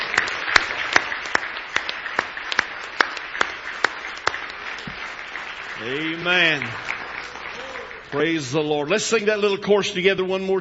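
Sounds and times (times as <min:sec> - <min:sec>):
audience hand clapping: 0:00.0 - 0:08.6
speech: 0:05.8 - 0:06.9, 0:08.1 - 0:10.6.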